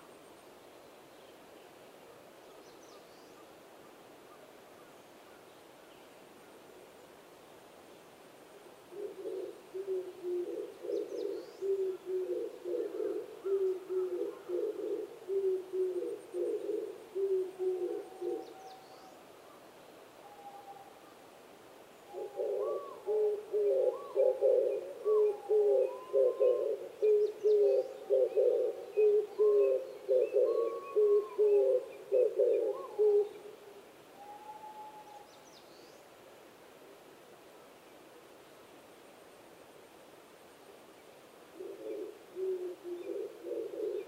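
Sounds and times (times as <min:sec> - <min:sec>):
Oriental turtle dove cooing: 0:08.9 - 0:18.8, 0:22.1 - 0:35.3, 0:41.5 - 0:44.0.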